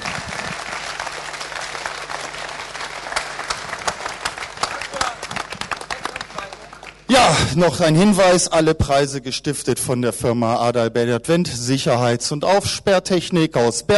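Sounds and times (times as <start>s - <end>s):
audience applause: 0.0s - 7.1s
speech: 7.2s - 13.9s.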